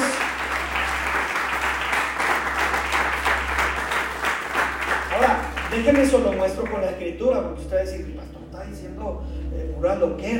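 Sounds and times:
audience applause: 0.0 - 6.9
low hum: 0.3 - 10.3
speech: 5.8 - 10.3.

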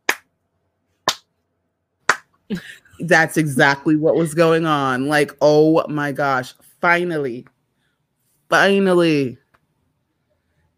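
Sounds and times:
slow hand clapping: 0.0 - 0.3, 1.1 - 1.3, 2.1 - 2.4
speech: 2.5 - 7.5, 8.5 - 9.4.

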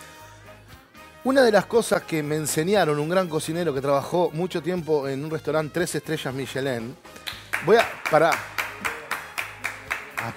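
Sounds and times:
speech: 1.2 - 8.6
person clapping hands: 7.1 - 10.3.

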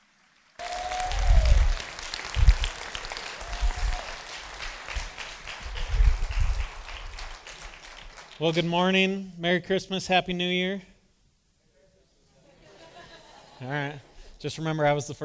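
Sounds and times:
church congregation applauding: 0.0 - 8.9
speech: 8.4 - 10.9, 13.6 - 15.2
laughter: 12.4 - 14.3.

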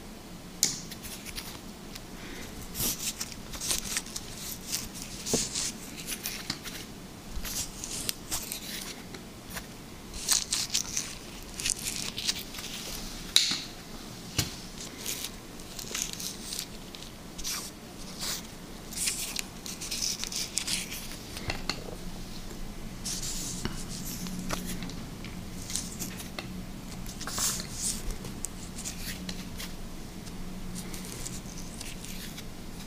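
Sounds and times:
soft low hum: 0.0 - 32.8
liquid slime being squished and stretched: 2.3 - 13.1, 14.7 - 22.0, 25.6 - 32.8.

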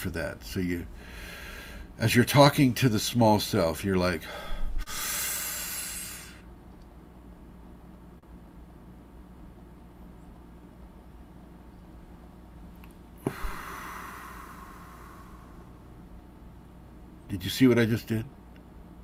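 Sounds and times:
speech: 0.0 - 1.4, 2.0 - 5.0, 17.5 - 18.4
hissing breath drawn in for a kundalini breathing exercise: 1.0 - 1.9, 4.2 - 6.5, 13.2 - 15.7.

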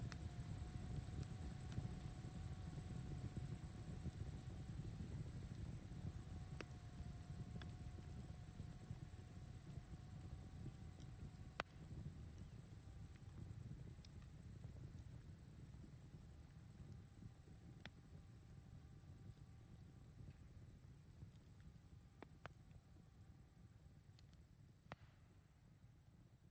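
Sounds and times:
campfire roaring: 0.0 - 18.5
faint mid-pitched hum: 0.0 - 26.4.

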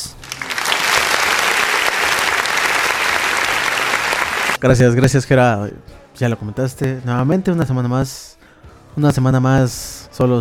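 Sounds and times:
audience applause: 0.0 - 4.6
speech: 4.6 - 8.4, 9.0 - 10.3.

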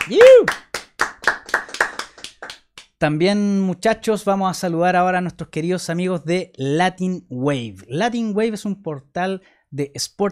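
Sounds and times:
applause: 0.0 - 2.9
speech: 0.1 - 0.6, 3.0 - 10.3.

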